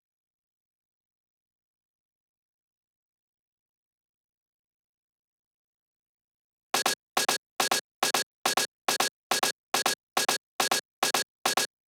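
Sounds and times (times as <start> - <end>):
drum loop with hi-hat at 140 BPM: 6.8 - 11.8.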